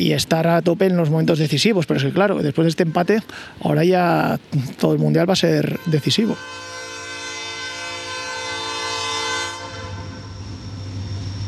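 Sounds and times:
speech: 0.0s - 6.8s
train horn: 1.6s - 3.3s, 5.6s - 11.2s
train rumbling and clattering along the railway track: 9.8s - 11.4s.

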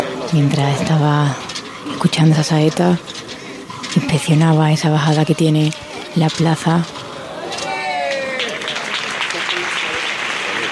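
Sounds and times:
speech: 0.3s - 3.3s, 3.9s - 7.0s
applause from the whole plaza: 7.2s - 10.7s.

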